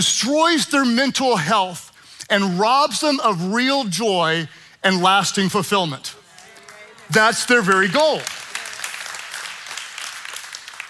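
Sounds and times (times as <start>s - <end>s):
speech: 0.0s - 6.2s, 7.1s - 8.4s
audience clapping: 6.2s - 10.8s.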